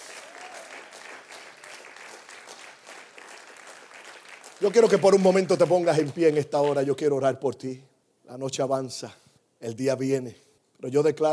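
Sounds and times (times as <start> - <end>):
audience applause: 0.0 - 6.9
speech: 4.6 - 11.3.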